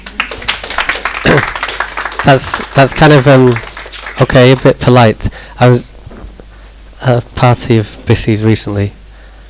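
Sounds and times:
audience clapping: 0.0 - 5.2
speech: 2.3 - 5.9, 7.0 - 9.0.

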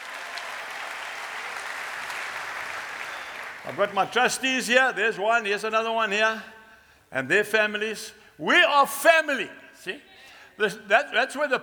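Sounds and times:
audience clapping: 0.0 - 4.1
speech: 3.6 - 11.6.

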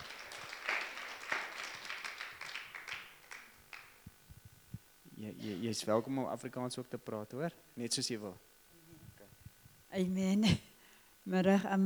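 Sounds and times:
hand clapping: 0.0 - 4.0
speech: 5.2 - 8.5, 10.0 - 11.8.

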